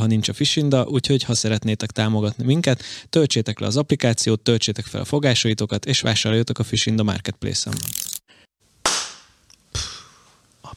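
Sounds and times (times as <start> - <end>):
speech: 0.0 - 8.1
loud sharp hand claps: 8.8 - 9.9.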